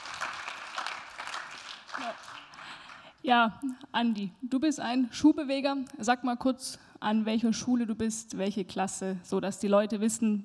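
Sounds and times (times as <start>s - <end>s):
audience applause: 0.0s - 3.1s
speech: 3.2s - 10.4s.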